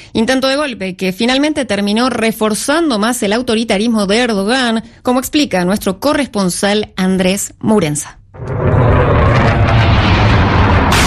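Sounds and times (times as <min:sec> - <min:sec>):
speech: 0:00.1 - 0:08.7
F-16 fighter jet roar while bombing the presidential palace in Ankara: 0:08.4 - 0:11.0
hissing burst: 0:08.4 - 0:11.0.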